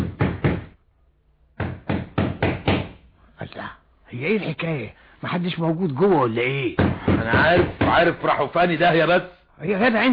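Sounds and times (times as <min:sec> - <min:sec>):
knocking on a neighbor's door: 0:00.0 - 0:00.7, 0:01.6 - 0:03.0, 0:06.8 - 0:08.2
speech: 0:04.1 - 0:10.1.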